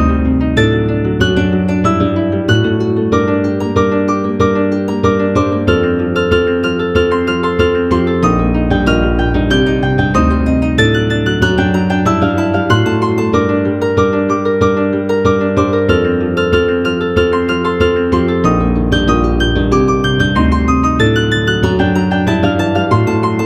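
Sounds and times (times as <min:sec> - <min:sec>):
harp: 0:00.0 - 0:23.4.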